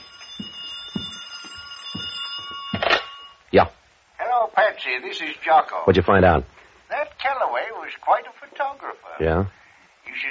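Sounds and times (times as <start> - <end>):
telephone ringing: 0.0 - 3.4
speech: 3.5 - 3.8, 4.6 - 6.5, 7.2 - 10.2.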